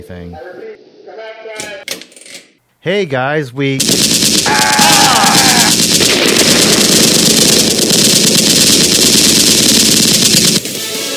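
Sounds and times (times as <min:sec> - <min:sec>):
speech: 0:00.0 - 0:00.7, 0:02.8 - 0:05.0
rapid automatic gunfire during a shootout: 0:03.8 - 0:11.0
high whine: 0:04.4 - 0:10.8.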